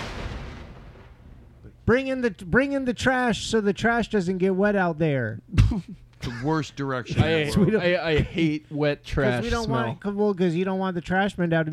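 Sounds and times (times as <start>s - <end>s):
thunder rumbling: 0.0s - 1.8s
speech: 1.9s - 11.7s.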